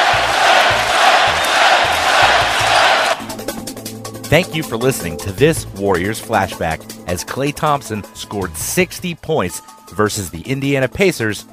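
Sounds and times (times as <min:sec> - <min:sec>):
arena crowd chanting a player's name: 0:00.0 - 0:03.3
speech: 0:04.3 - 0:11.5.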